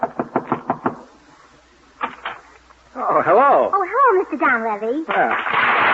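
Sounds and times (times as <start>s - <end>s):
knocking on a door: 0.0s - 1.0s
speech: 3.1s - 5.8s.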